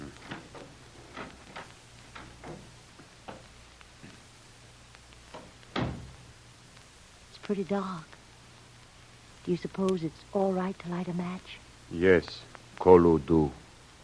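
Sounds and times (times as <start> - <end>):
cellar door opening: 0.0 - 3.5, 5.3 - 6.2
speech: 7.5 - 8.1, 9.5 - 13.6.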